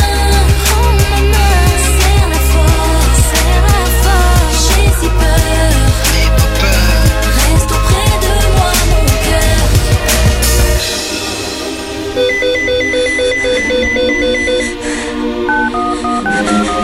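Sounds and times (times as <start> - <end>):
loud rumbling noise: 0.1 - 12.7
pager beeping: 12.2 - 14.8, 15.5 - 16.8.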